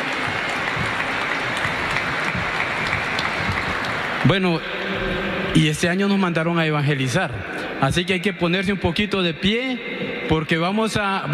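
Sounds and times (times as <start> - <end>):
audience applause: 0.0 - 5.4
speech: 4.2 - 11.3.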